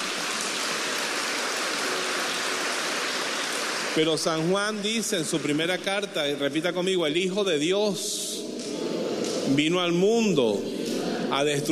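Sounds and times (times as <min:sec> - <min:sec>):
audience applause: 0:00.0 - 0:06.6
speech: 0:04.0 - 0:08.5, 0:09.5 - 0:10.7, 0:11.3 - 0:11.7.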